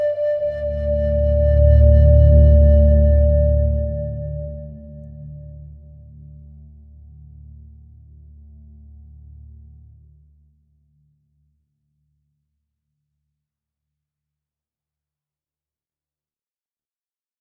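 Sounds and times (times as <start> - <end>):
native american flute: 0.0 - 5.5.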